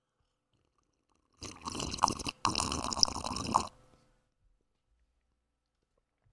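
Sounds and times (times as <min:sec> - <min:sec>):
slurping sips of tepid black coffee: 0:01.3 - 0:03.7.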